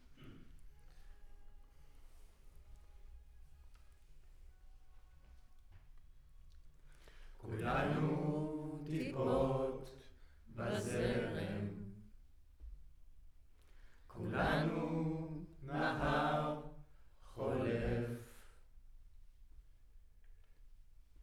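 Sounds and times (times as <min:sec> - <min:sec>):
choir recorded with center U47 microphone: 0:07.4 - 0:12.2, 0:14.1 - 0:18.5.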